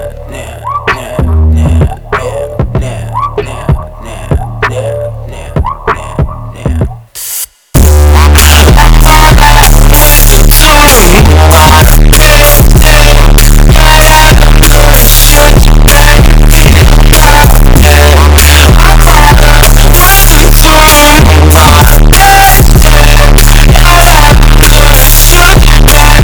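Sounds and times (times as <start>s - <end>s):
bass-boosted audio: 0.0s - 26.2s.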